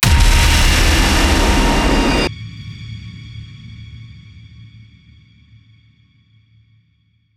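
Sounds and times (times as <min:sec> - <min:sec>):
impact hit: 0:00.0 - 0:02.3
rising tension build: 0:00.0 - 0:02.3.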